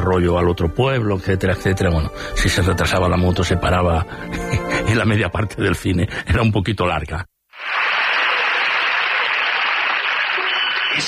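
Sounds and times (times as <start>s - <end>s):
speech: 0.1s - 7.3s
audience applause: 7.6s - 11.0s.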